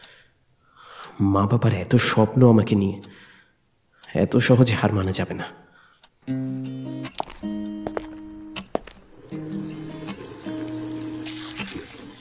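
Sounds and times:
speech: 0:01.2 - 0:03.3, 0:04.1 - 0:07.6
tap water running in a bathroom while someone washes their face: 0:08.8 - 0:12.1.

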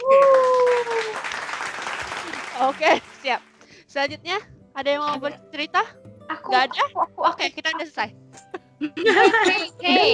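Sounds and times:
loud applause sound effect: 0:00.0 - 0:03.2
speech: 0:02.6 - 0:08.2, 0:08.8 - 0:10.1
laughter: 0:06.5 - 0:07.4, 0:08.8 - 0:10.1.

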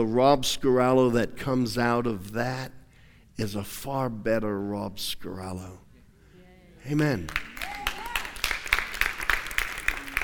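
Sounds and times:
speech: 0:00.0 - 0:02.8, 0:03.4 - 0:05.8, 0:06.8 - 0:07.6
audience clapping and cheering: 0:07.0 - 0:10.2.

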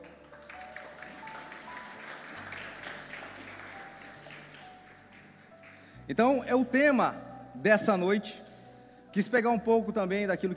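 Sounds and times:
audience applauding: 0:00.0 - 0:06.0
speech: 0:06.1 - 0:08.4, 0:09.2 - 0:10.5.

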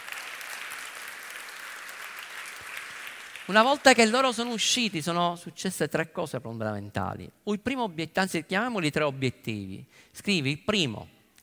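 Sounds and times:
audience applause: 0:00.0 - 0:04.2
speech: 0:03.5 - 0:11.2.

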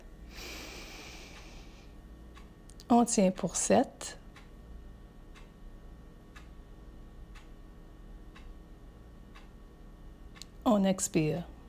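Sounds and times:
slow inhalation in a guided breathing exercise: 0:00.3 - 0:01.9
speech: 0:02.9 - 0:04.2, 0:10.7 - 0:11.6.

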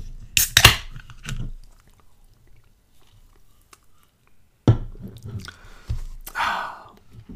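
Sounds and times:
can of pineapple mango seltzer cracking open: 0:00.4 - 0:01.4.

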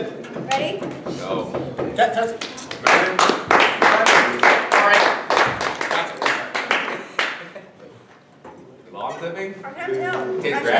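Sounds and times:
speech: 0:00.6 - 0:03.6, 0:09.2 - 0:10.7
live audience clapping: 0:02.4 - 0:07.6.

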